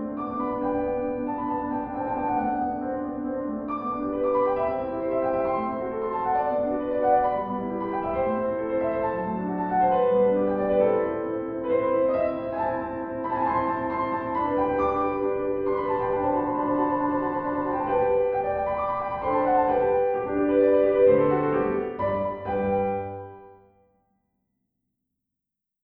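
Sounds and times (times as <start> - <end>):
classical sonata in C major: 0.0 - 23.8.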